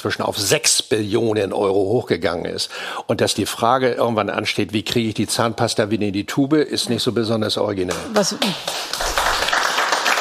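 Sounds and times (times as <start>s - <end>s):
speech: 0.0s - 9.2s
loud crowd applause: 8.5s - 10.1s.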